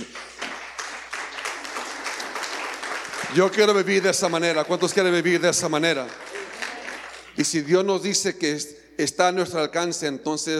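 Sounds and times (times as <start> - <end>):
audience applauding: 0.0 - 7.9
speech: 3.3 - 6.3, 7.4 - 10.5.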